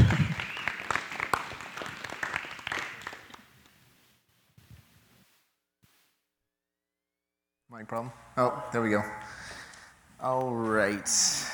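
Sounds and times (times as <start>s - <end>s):
audience clapping: 0.0s - 3.7s
speech: 7.8s - 9.5s, 10.2s - 11.5s.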